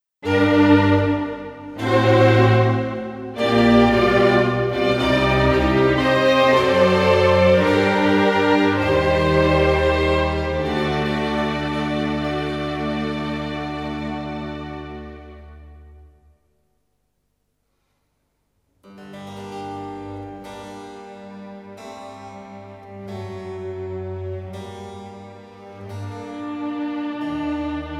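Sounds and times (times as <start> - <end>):
classical instrumental music, vivace and grave: 0.2 - 16.4, 19.0 - 27.9.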